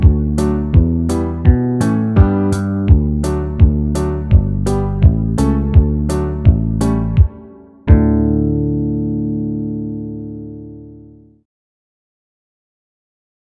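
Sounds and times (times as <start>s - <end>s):
banjo backing track in the key of D: 0.0s - 10.2s.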